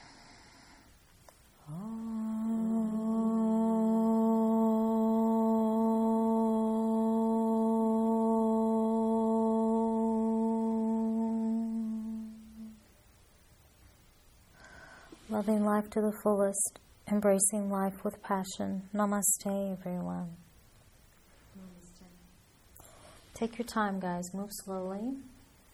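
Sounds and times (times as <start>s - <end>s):
soft om chanted together at end of evening yoga practice: 1.6s - 12.9s
speech: 15.4s - 20.4s, 23.4s - 25.3s.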